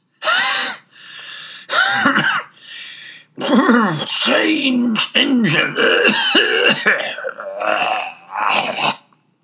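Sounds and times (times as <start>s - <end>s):
person imitating a hoarse choking cough: 1.7s - 2.5s, 3.4s - 9.1s
speech: 3.6s - 9.0s.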